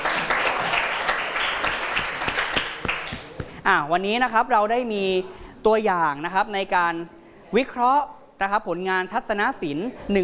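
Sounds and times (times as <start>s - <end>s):
classroom applause: 0.0s - 3.6s
speech: 3.7s - 10.2s.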